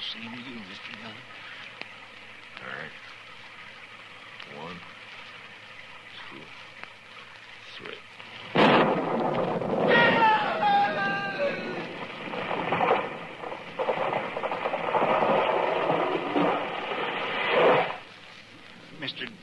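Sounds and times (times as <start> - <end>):
tree crackling and splintering from lightning strike: 0.0 - 19.4
speech: 0.1 - 1.4
thunder crash from lightning striking a tree: 8.5 - 18.0.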